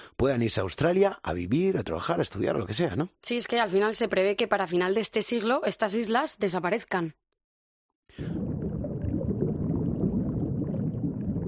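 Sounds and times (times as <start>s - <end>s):
speech: 0.2s - 7.2s, 8.2s - 8.4s
water splashing: 8.2s - 11.4s.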